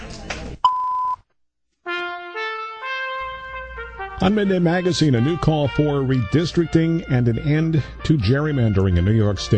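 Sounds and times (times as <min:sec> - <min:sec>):
BBC time signal pips: 0:00.7 - 0:01.2
speech: 0:04.2 - 0:09.5.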